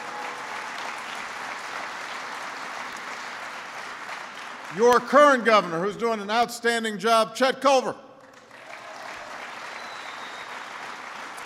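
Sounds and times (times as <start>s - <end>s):
audience applause: 0.0s - 5.5s, 8.2s - 11.4s
speech: 4.7s - 8.0s.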